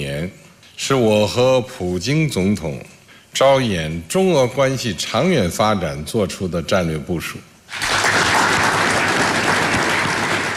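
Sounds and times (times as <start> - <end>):
speech: 0.0 - 7.9
warm crowd applause: 7.7 - 10.5.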